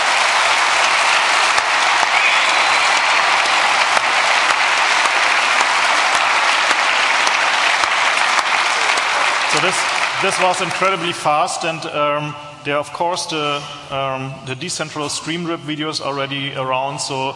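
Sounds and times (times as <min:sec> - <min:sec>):
audience applause: 0:00.0 - 0:11.5
speech: 0:09.6 - 0:17.3.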